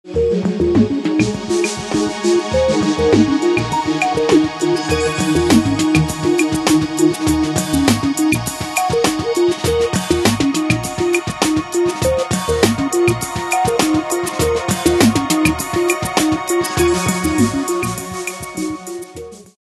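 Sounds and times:
lounge music: 0:00.0 - 0:19.6.

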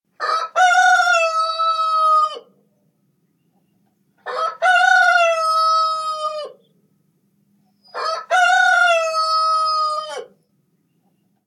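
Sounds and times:
rooster crowing: 0:00.2 - 0:02.5, 0:04.2 - 0:06.6, 0:07.9 - 0:10.4.

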